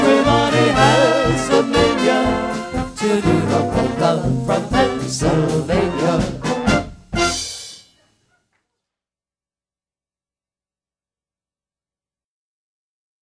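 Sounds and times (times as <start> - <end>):
brass band playing polka: 0.0 - 7.8.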